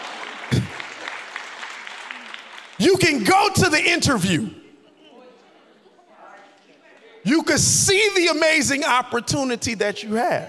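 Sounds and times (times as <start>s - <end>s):
audience clapping: 0.0s - 3.8s
speech: 0.5s - 0.8s, 2.8s - 4.6s, 7.3s - 10.4s.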